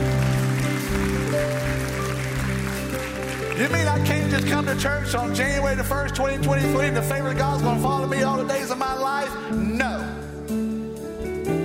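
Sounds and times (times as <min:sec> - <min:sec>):
crowd clapping: 0:00.0 - 0:05.4
sustained organ-like keyboard chords: 0:00.0 - 0:11.6
speech: 0:03.6 - 0:10.2.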